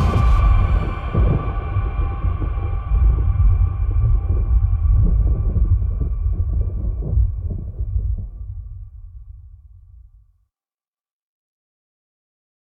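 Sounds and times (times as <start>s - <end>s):
thunder: 0.0s - 9.5s.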